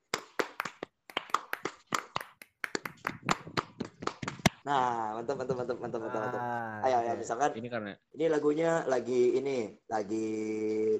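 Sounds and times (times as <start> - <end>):
rhythmic scout clapping pattern: 0.0 - 4.6
speech: 4.7 - 10.9.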